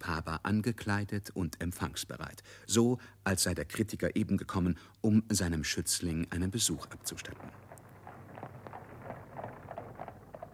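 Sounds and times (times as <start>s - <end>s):
speech: 0.5s - 7.7s
low rumble: 6.6s - 10.5s
horse hooves clip-clopping as a horse-drawn carriage arrives: 6.8s - 10.5s.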